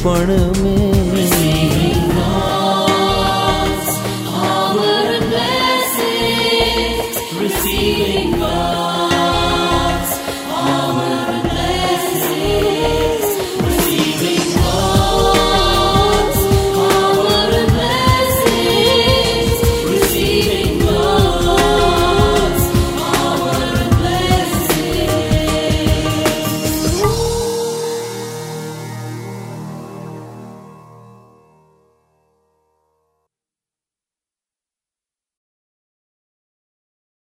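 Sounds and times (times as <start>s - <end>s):
duet singing full songs: 0.0s - 28.4s.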